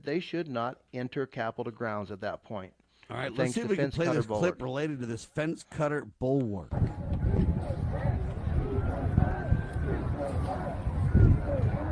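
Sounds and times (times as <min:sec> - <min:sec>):
speech: 0:00.0 - 0:07.1
distant crowd: 0:06.7 - 0:11.9.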